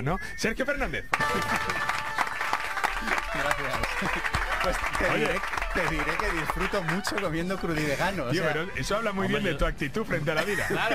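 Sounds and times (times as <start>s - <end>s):
speech: 0.0s - 2.1s, 3.0s - 10.9s
audience clapping: 1.1s - 8.3s
laughter: 1.2s - 8.8s, 10.3s - 10.9s.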